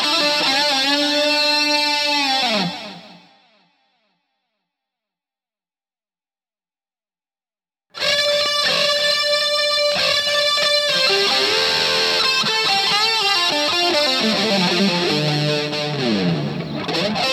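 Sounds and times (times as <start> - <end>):
electric guitar through boost and fuzz pedals at low guitar volume: 0.0 - 3.8, 8.0 - 17.3.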